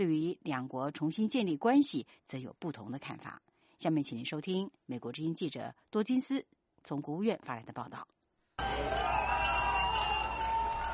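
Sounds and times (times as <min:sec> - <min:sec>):
speech: 0:00.0 - 0:08.2
crowd cheering and chanting outside the Cuban embassy in Washington: 0:08.6 - 0:10.9.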